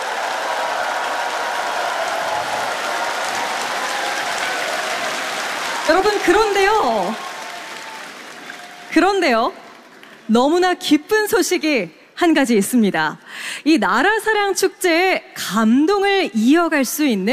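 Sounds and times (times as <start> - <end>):
crowd applause: 0.0 - 10.3
speech: 5.9 - 7.3, 9.0 - 9.6, 10.3 - 17.3.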